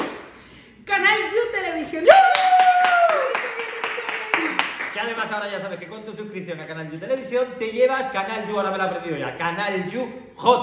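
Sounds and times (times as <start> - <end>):
speech: 1.6 - 2.5, 5.0 - 10.6
audience applause: 2.3 - 5.1.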